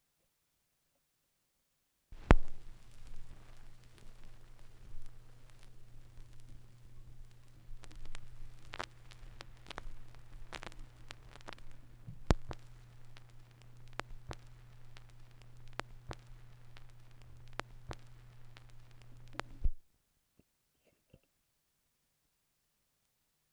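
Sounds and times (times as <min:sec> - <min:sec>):
vinyl record noise: 0:02.2 - 0:19.8.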